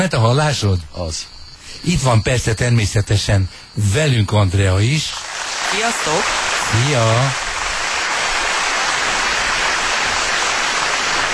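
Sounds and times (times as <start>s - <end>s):
speech: 0.0s - 7.4s
audience applause: 5.1s - 11.3s.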